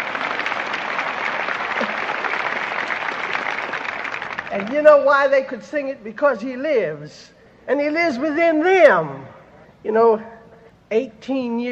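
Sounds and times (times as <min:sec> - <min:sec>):
audience applause: 0:00.0 - 0:04.7
speech: 0:04.5 - 0:10.3, 0:10.9 - 0:11.7.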